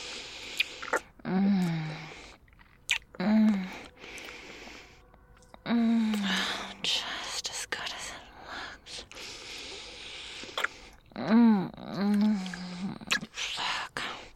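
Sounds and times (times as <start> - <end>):
person chewing and tasting food: 0.0 - 6.8, 9.0 - 13.4.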